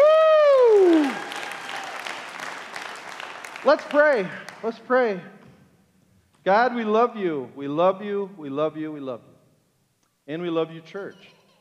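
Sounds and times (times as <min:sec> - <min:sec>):
audience clapping: 0:00.0 - 0:05.1
speech: 0:03.7 - 0:05.4, 0:06.4 - 0:09.3, 0:10.3 - 0:11.4.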